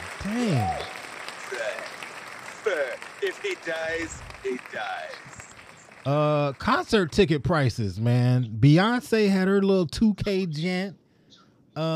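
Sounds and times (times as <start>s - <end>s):
audience clapping: 0.0s - 7.9s
speech: 0.2s - 0.9s, 2.7s - 5.4s, 6.0s - 11.0s, 11.8s - 11.9s.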